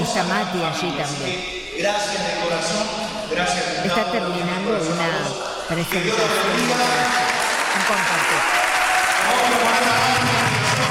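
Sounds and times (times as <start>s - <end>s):
speech: 0.2s - 8.6s, 9.2s - 10.8s
applause: 5.8s - 10.8s.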